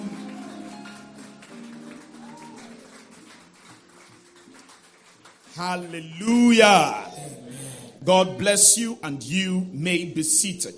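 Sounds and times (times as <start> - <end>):
audience clapping: 0.0 - 7.4
speech: 5.6 - 7.3, 8.0 - 10.7.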